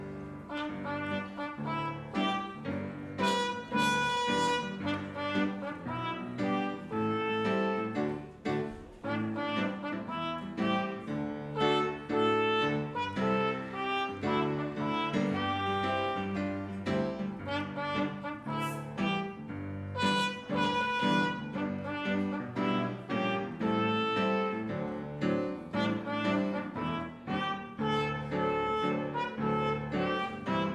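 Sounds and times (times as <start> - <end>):
trumpet: 0.3 - 30.7.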